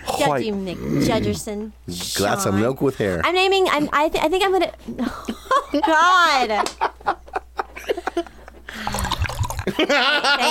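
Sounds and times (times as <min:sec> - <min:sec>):
speech: 0:00.2 - 0:07.2, 0:09.8 - 0:10.4
laughter: 0:05.0 - 0:10.4
slurping sips of tea: 0:08.8 - 0:09.7.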